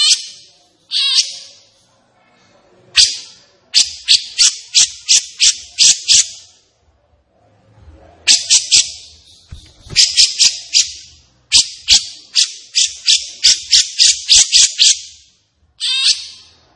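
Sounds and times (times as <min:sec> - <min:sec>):
captive grey-cheeked bulbul chattering: 0:03.0 - 0:06.5, 0:08.3 - 0:16.6.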